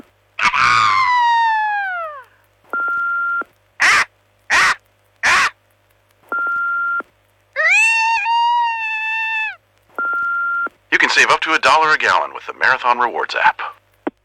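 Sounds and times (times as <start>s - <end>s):
people imitating a bald eagle's call: 0.4s - 2.3s, 3.8s - 5.6s, 7.6s - 9.6s
steady electronic beep: 2.8s - 3.4s, 10.0s - 10.7s
speech: 11.2s - 13.6s.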